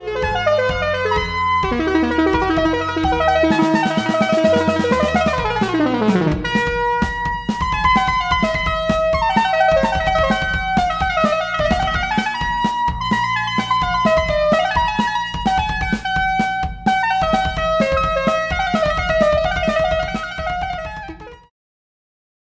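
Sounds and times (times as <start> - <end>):
brassy synth lead: 0.1 - 21.4.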